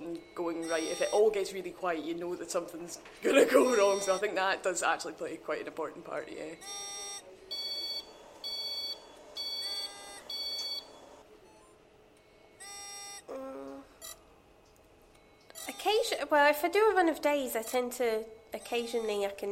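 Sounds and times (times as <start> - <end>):
different-pitched tones from other monitors: 0.0 - 2.2, 3.6 - 4.6, 6.4 - 14.3, 15.2 - 19.4
low hum: 0.0 - 19.4
hospital ward machine alarms beeping: 0.1 - 1.5, 3.6 - 4.5, 6.4 - 11.7, 14.0 - 14.2, 15.2 - 16.2
speech: 0.7 - 7.0, 16.3 - 19.4.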